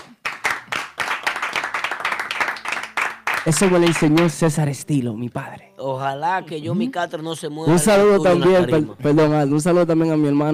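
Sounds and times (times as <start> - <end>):
applause: 0.0 - 4.6
speech: 3.4 - 10.5.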